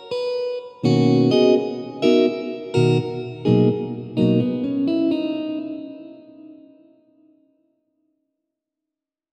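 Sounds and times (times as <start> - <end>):
electric guitar: 0.0 - 7.2.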